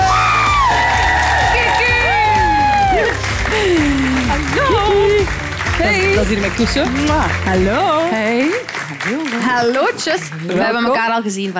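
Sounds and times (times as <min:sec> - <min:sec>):
audience cheering: 0:00.0 - 0:07.8
audience applause: 0:00.0 - 0:11.5
speech: 0:05.8 - 0:11.5.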